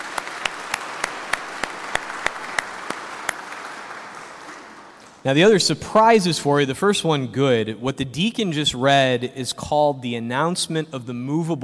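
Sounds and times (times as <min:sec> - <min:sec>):
church congregation clapping to welcome a priest back to his home parish: 0:00.0 - 0:05.2
speech: 0:05.2 - 0:11.6.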